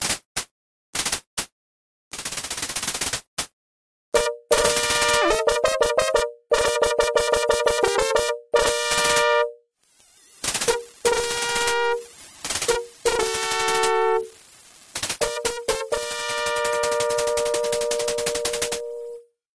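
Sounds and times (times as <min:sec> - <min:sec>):
fanfare: 0:04.2 - 0:09.6, 0:10.6 - 0:14.3, 0:15.2 - 0:19.3.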